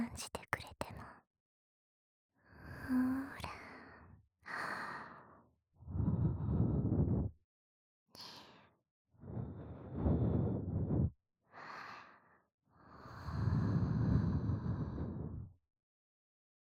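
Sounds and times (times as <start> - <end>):
speech: 0.2 - 0.4
soft breaths blown toward the listener: 2.8 - 7.4, 9.2 - 12.4, 13.0 - 15.5.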